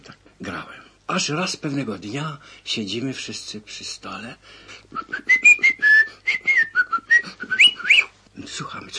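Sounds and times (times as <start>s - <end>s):
speech: 1.1s - 5.3s, 8.6s - 8.9s
blackbird singing a whistled folk tune: 5.1s - 8.1s.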